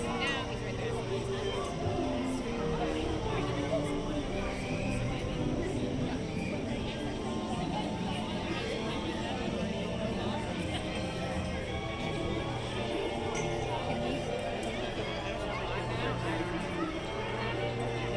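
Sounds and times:
theme park corner ambience: 0.0s - 18.1s.

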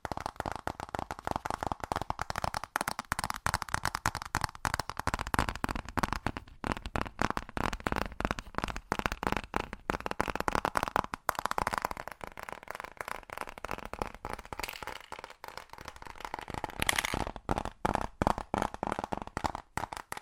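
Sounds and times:
fast dense tapping: 0.0s - 20.2s.

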